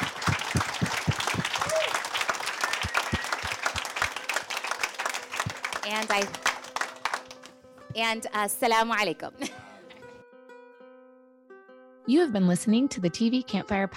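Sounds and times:
audience applause: 0:00.0 - 0:07.5
whistle-like tone: 0:01.6 - 0:03.8
speech: 0:05.9 - 0:06.4, 0:08.0 - 0:09.7, 0:12.1 - 0:13.9.

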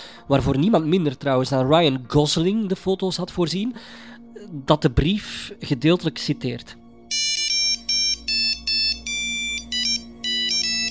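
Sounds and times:
speech: 0:00.3 - 0:07.3
phone voicemail message alert: 0:07.1 - 0:10.8.

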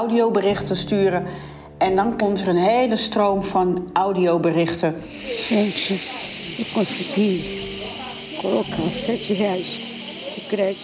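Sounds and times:
speech: 0:00.0 - 0:07.8, 0:08.4 - 0:09.9, 0:10.5 - 0:10.8
person speaking in strained, breathy bursts, gasping for air: 0:01.3 - 0:01.8
hospital breathing machines hissing: 0:05.0 - 0:10.8.

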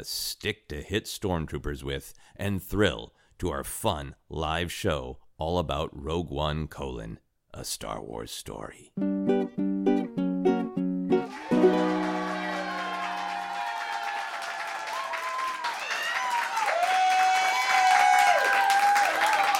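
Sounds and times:
speech: 0:00.0 - 0:10.2
live audience applause: 0:11.2 - 0:19.5.

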